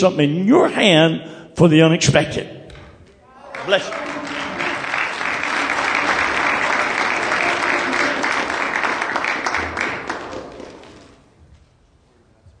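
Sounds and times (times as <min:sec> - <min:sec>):
speech: 0:00.0 - 0:02.6, 0:03.6 - 0:04.2
audience applause: 0:03.4 - 0:11.3.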